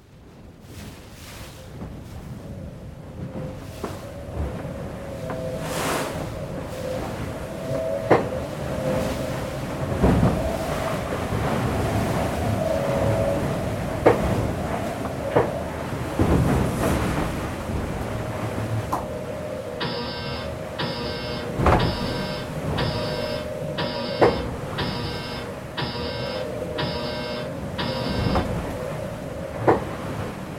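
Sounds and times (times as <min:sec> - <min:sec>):
wind onboard a sailboat: 0:00.0 - 0:30.5
wash of the sea: 0:00.4 - 0:30.5
sailboat electronic alarm beeps: 0:19.8 - 0:28.6
sailboat rigging creaking and straining: 0:19.8 - 0:28.8.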